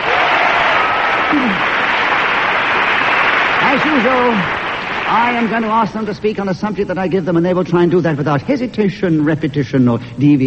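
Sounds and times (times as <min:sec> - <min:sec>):
audience applause welcoming guests onto a comedy panel show: 0:00.0 - 0:06.2
speech: 0:03.8 - 0:10.4.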